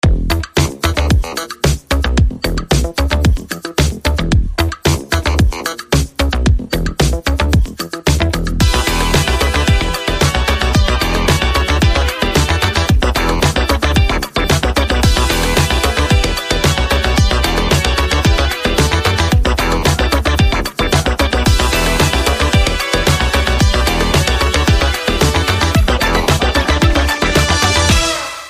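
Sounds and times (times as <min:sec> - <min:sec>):
booming beat: 0:00.0 - 0:28.3.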